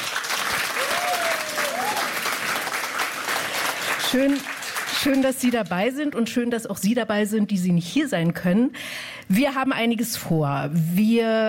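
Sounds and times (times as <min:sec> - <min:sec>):
audience applause: 0:00.0 - 0:05.5
speech: 0:04.1 - 0:11.4.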